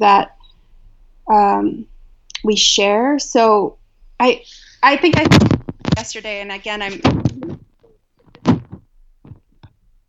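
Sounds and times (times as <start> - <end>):
speech: 0.0 - 0.3, 1.3 - 7.6
microphone knocked off a table: 5.2 - 6.0, 7.0 - 9.7.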